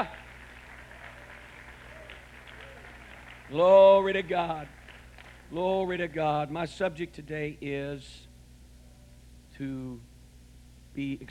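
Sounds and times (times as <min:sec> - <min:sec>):
audience clapping hands: 0:00.0 - 0:06.1
speech: 0:03.5 - 0:04.8, 0:05.5 - 0:08.3, 0:09.6 - 0:10.1, 0:11.0 - 0:11.2.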